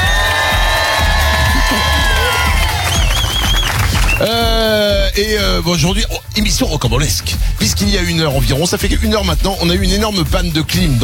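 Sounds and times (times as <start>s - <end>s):
live audience cheering and shouting: 0.0s - 4.9s
speech: 5.2s - 11.0s.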